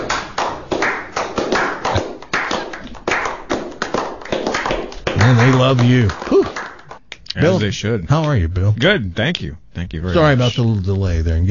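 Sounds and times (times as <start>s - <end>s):
crowd clapping: 0.0s - 7.2s
speech: 5.3s - 6.3s, 7.4s - 11.4s.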